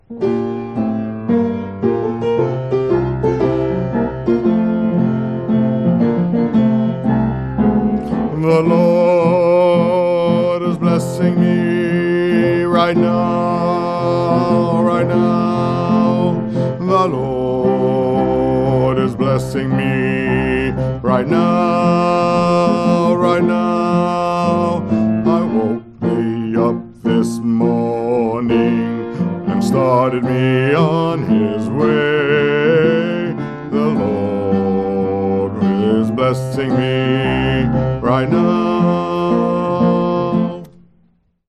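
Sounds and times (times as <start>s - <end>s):
bass: 0.0s - 10.0s, 10.7s - 41.4s.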